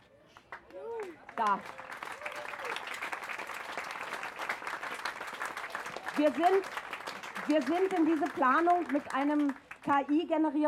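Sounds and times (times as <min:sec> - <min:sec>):
voice rising over the clapping: 0:00.6 - 0:02.9, 0:05.6 - 0:10.2
audience applause: 0:00.6 - 0:09.8
speech: 0:01.4 - 0:01.8, 0:06.2 - 0:06.8, 0:07.5 - 0:10.6.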